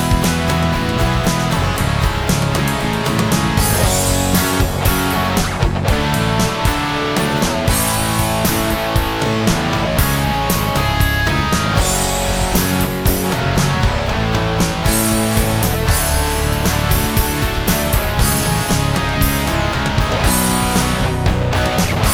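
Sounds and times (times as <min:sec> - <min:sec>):
guitar melody: 0:00.0 - 0:22.1.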